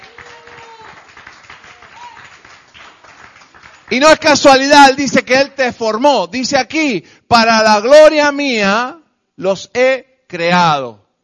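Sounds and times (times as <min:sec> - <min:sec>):
scattered voices and whoops: 0:00.0 - 0:02.4
audience applauding: 0:00.0 - 0:04.3
speech: 0:03.9 - 0:11.0.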